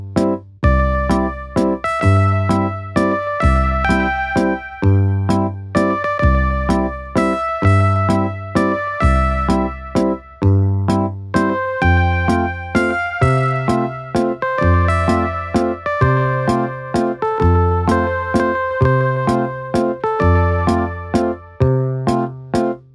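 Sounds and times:
CASIO keyboard waltz: 0.2s - 22.8s.

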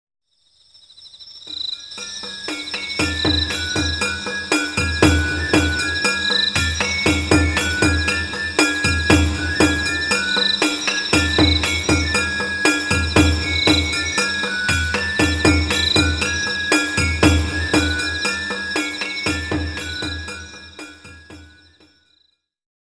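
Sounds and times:
festival accompaniment music: 2.0s - 21.6s.

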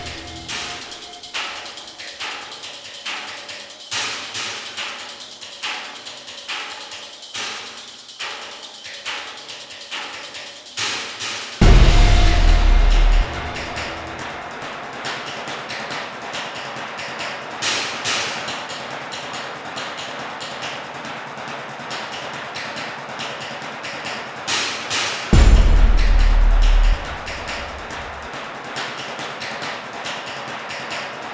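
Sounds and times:
suspense music: 0.0s - 1.9s, 11.6s - 14.8s, 25.4s - 28.3s.

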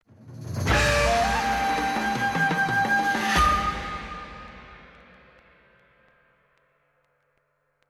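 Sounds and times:
kung fu music stinger: 0.5s - 5.4s.

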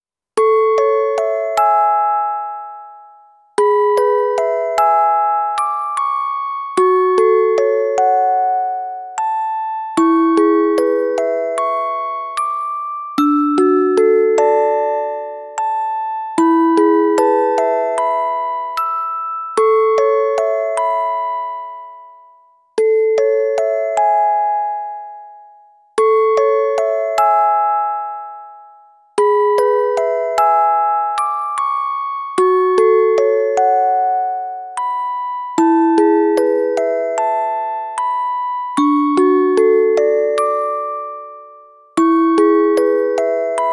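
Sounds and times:
music box: 0.4s - 43.7s.

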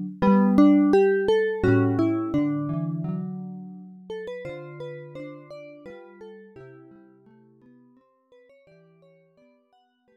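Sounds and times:
lute piece: 0.0s - 5.8s.

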